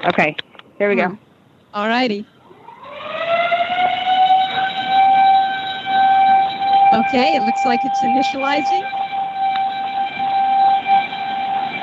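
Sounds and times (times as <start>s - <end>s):
speech: 0.0s - 2.4s, 6.9s - 9.0s
alarm siren during reset: 2.3s - 11.8s.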